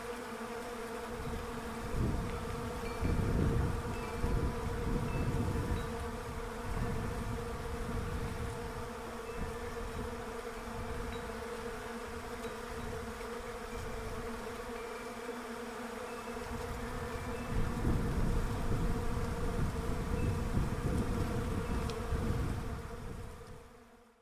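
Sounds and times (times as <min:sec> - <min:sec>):
bees humming: 0:00.0 - 0:24.0
wind gusts: 0:01.0 - 0:14.4, 0:16.3 - 0:23.6.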